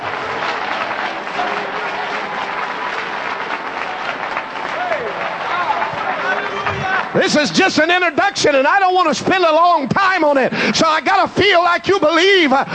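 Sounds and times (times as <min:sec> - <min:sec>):
audience clapping hands: 0:00.0 - 0:09.0
speech: 0:07.2 - 0:12.7.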